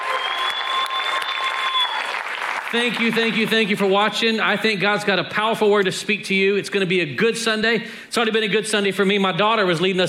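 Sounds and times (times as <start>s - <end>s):
audience applause: 0.0s - 3.8s
speech: 2.7s - 10.0s.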